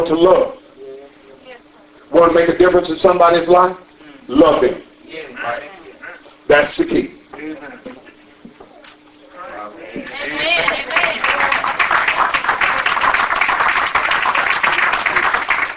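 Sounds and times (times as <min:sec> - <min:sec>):
speech: 0:00.0 - 0:00.6, 0:02.1 - 0:05.8, 0:06.5 - 0:08.0
audience hand clapping: 0:10.0 - 0:15.7.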